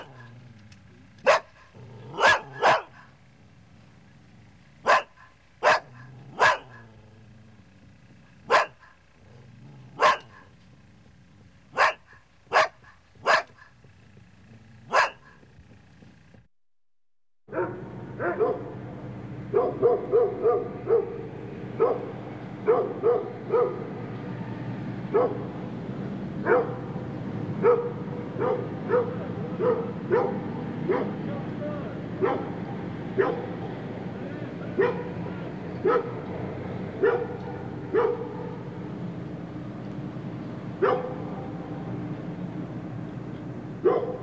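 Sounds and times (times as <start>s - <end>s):
dog barking: 0.0s - 0.4s, 1.2s - 3.2s, 4.8s - 7.0s, 8.4s - 10.6s, 11.7s - 13.9s, 14.5s - 15.5s, 17.5s - 18.7s, 19.5s - 24.0s, 25.1s - 25.5s, 26.4s - 27.0s, 27.6s - 31.2s, 32.2s - 33.6s, 34.7s - 36.3s, 37.0s - 38.7s, 40.8s - 41.3s, 43.8s - 44.2s
low hum: 0.0s - 16.5s, 17.5s - 44.2s.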